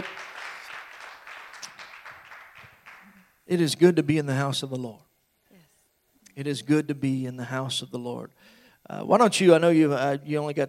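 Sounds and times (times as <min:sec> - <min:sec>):
church congregation applauding: 0:00.0 - 0:03.5
speech: 0:03.5 - 0:05.1, 0:06.4 - 0:10.6.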